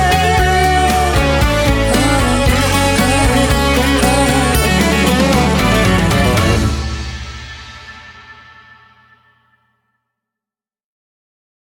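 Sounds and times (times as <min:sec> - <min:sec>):
cha cha music: 0:00.0 - 0:07.8.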